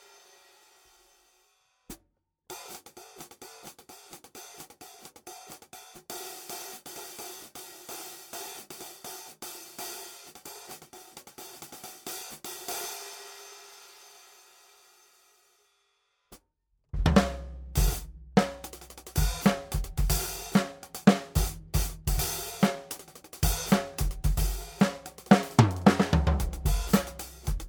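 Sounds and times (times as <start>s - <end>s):
14-inch traditional dark thin hi-hat cymbal: 0.0s - 1.6s, 2.5s - 15.8s, 17.8s - 27.6s.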